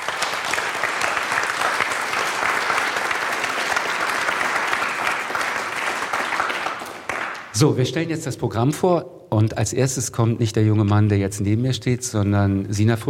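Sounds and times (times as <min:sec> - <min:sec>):
audience applause: 0:00.0 - 0:07.5
speech: 0:07.6 - 0:13.0.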